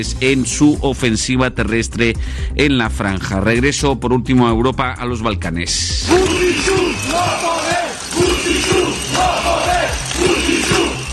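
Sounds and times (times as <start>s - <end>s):
speech: 0.0s - 7.7s
protest crowd chanting: 6.1s - 11.1s.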